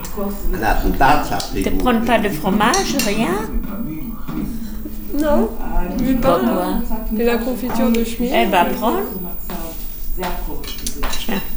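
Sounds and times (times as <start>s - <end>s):
speech: 0.2s - 9.4s, 10.2s - 11.5s
spoons and dishes clinking at a breakfast of bread and jam: 2.6s - 3.4s, 10.2s - 11.5s.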